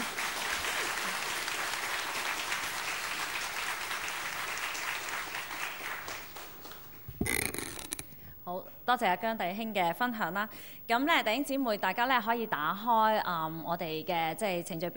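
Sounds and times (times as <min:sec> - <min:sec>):
audience applause: 0:00.0 - 0:08.0
speech: 0:08.9 - 0:14.9.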